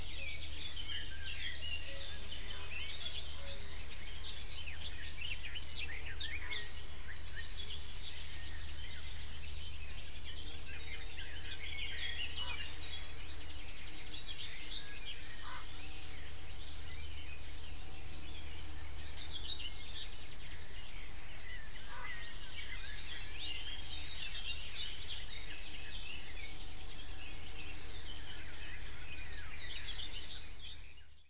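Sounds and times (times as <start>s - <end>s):
yellowhammer singing: 0.0s - 31.2s.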